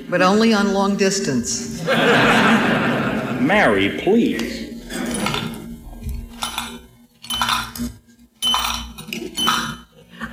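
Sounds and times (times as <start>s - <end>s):
speech: 0.1s - 4.6s
laughter: 1.8s - 3.4s, 10.1s - 10.3s
coins dropping into a pay phone: 6.4s - 9.8s.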